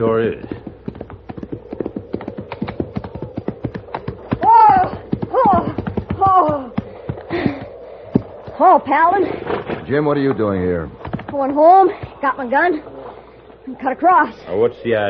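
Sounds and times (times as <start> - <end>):
speech: 0.0 - 0.7, 8.6 - 12.9, 13.7 - 15.0
horse hooves clip-clopping: 0.0 - 8.8, 9.5 - 12.4.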